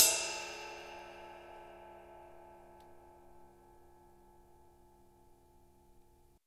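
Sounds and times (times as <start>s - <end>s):
acoustic drum kit ride cymbal: 0.0s - 3.5s.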